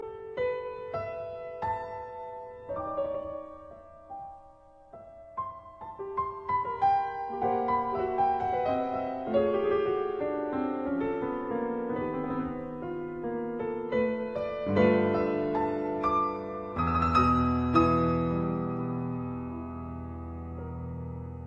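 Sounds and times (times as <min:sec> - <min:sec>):
prelude: 0:00.0 - 0:21.4.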